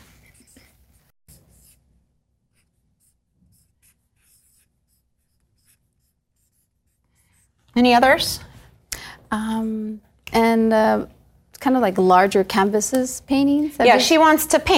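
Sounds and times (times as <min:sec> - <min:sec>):
handwriting strokes: 0:00.0 - 0:08.0
speech: 0:07.8 - 0:08.5, 0:09.3 - 0:14.7.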